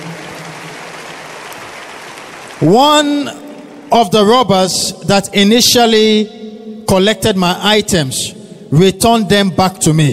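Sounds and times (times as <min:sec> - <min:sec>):
audience clapping: 0:00.0 - 0:03.9
speech: 0:02.6 - 0:10.1.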